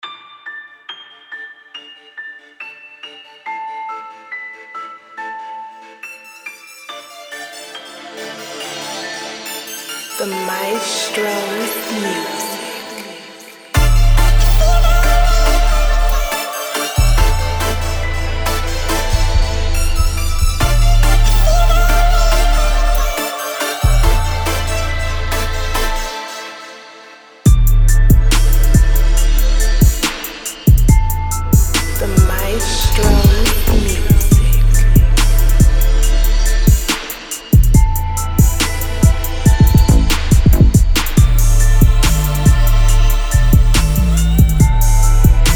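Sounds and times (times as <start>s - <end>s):
music beat: 13.8s - 26.5s, 27.5s - 45.5s.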